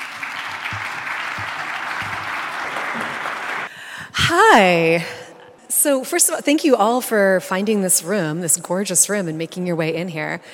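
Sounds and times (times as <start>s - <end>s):
audience applause welcoming authors onto the stage: 0.0s - 3.7s
speech: 4.3s - 5.2s, 5.8s - 10.5s.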